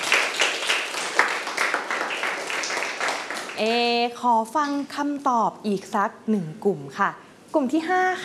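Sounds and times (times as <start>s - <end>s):
students clapping: 0.0s - 3.8s
speech: 3.6s - 8.2s.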